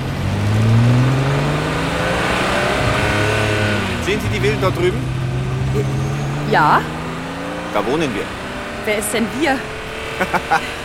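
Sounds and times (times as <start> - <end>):
sports car engine revving: 0.0 - 10.8
speech: 4.4 - 5.2, 5.8 - 7.0, 7.7 - 10.7
laughter: 9.4 - 10.8.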